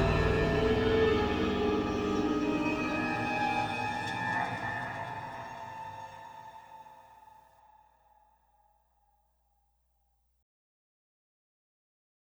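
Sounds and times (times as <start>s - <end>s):
orchestral music without choir: 0.0s - 7.3s.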